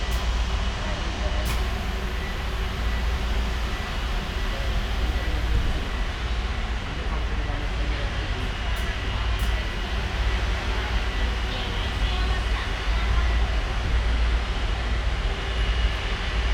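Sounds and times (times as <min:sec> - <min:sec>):
bus interior ambience at Istanbul airport: 0:00.0 - 0:16.3.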